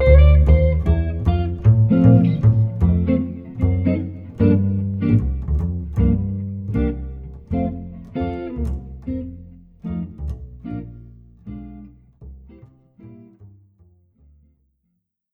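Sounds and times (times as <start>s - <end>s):
jazz duo playing swing: 0.0s - 11.8s.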